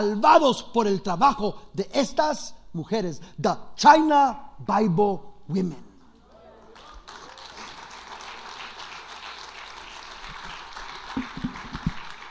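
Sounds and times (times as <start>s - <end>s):
speech: 0.0s - 5.9s
crowd applauding in a reverberant room: 6.2s - 12.2s.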